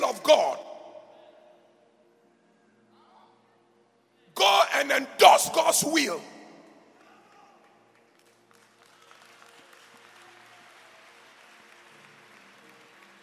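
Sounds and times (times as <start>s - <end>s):
speech: 4.8s - 6.4s
audience clapping: 6.9s - 13.2s.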